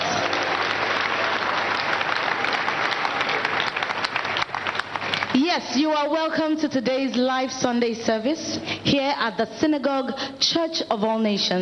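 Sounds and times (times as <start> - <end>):
audience applause: 0.0 - 5.4
speech: 5.3 - 11.6.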